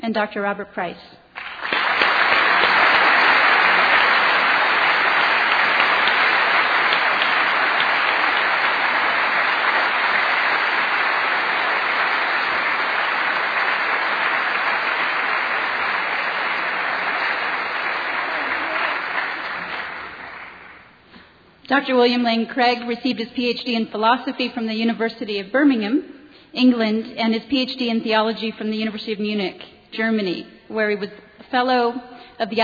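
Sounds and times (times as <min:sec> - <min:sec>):
speech: 0:00.0 - 0:01.7, 0:21.7 - 0:32.6
debate audience applause welcoming two speakers: 0:01.4 - 0:20.9.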